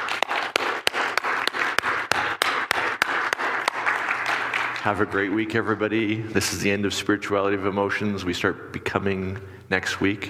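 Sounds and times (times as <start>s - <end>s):
audience applause for the band: 0.0s - 5.4s
rhythmic clapping: 0.0s - 6.2s
speech: 4.8s - 10.2s.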